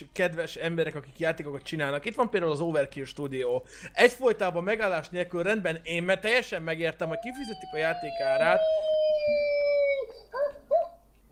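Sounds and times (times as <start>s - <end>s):
speech: 0.2s - 9.5s
snail screeching in a video at full volume: 7.1s - 9.6s.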